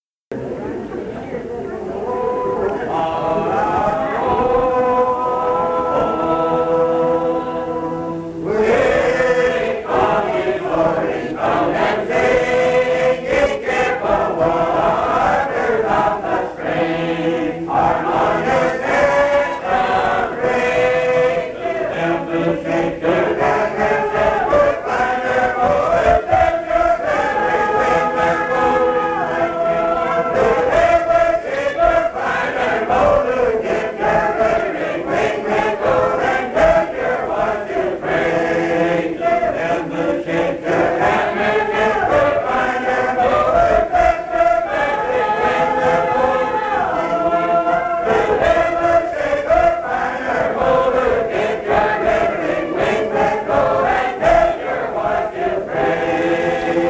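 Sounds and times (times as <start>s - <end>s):
voices singing in harmony: 0.4s - 56.8s.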